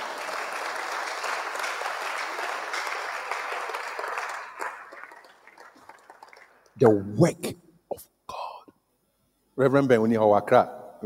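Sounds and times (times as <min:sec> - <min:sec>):
audience clapping: 0:00.0 - 0:07.0
speech: 0:06.8 - 0:07.6, 0:09.6 - 0:11.0.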